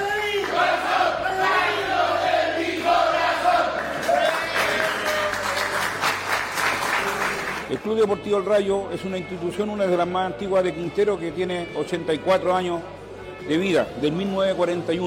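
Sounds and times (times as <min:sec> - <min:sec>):
crowd clapping: 0:00.0 - 0:01.1, 0:02.6 - 0:07.8
crowd shouting a team cheer: 0:00.0 - 0:05.1
speech: 0:07.9 - 0:15.0.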